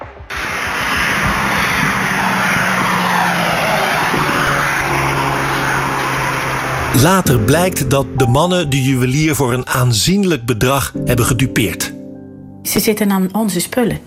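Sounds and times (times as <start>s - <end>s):
Volkswagen Golf getaway car speeding away on a ring road: 0.3s - 9.5s
speech: 7.0s - 12.0s, 12.6s - 14.0s.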